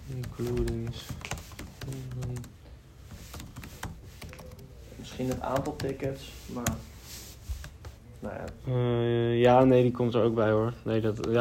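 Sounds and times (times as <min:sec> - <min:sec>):
speech: 0:00.1 - 0:02.6, 0:05.1 - 0:06.9, 0:08.2 - 0:11.4
typing a message into Microsoft Teams on a computer keyboard: 0:00.1 - 0:06.8.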